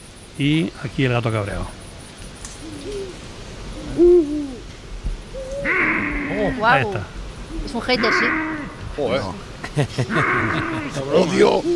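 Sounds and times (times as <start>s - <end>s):
faint hiss: 0.0s - 11.7s
speech: 0.4s - 1.8s, 4.0s - 4.5s, 6.4s - 11.7s
Eurasian eagle owls hooting: 2.6s - 4.7s, 5.3s - 8.8s, 10.0s - 11.7s
laughter: 9.6s - 11.6s.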